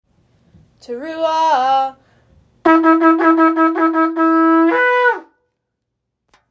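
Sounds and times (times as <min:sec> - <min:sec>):
shofar teruah blasts: 0:02.6 - 0:05.4.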